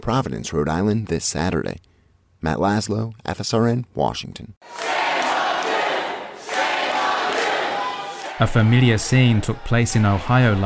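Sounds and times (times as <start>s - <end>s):
speech: 0.0s - 5.1s, 8.4s - 10.6s
crowd jeering and yelling at lawmakers: 4.6s - 10.6s.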